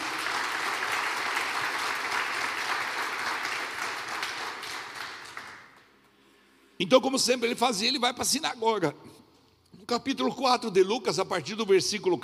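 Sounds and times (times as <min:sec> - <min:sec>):
audience applauding loudly: 0:00.0 - 0:06.0
speech: 0:06.8 - 0:09.2, 0:09.9 - 0:12.2.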